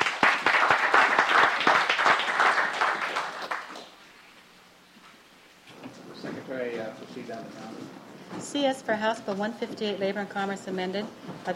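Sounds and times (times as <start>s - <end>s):
audience clapping in a legislative chamber welcoming guests: 0.0s - 4.1s
speech: 7.3s - 11.5s.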